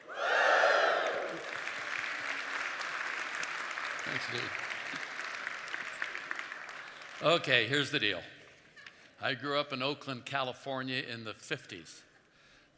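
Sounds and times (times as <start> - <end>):
audience whooping: 0.0 - 1.6
audience clapping: 0.6 - 8.7
speech: 4.1 - 4.8, 7.2 - 8.3, 9.2 - 12.1.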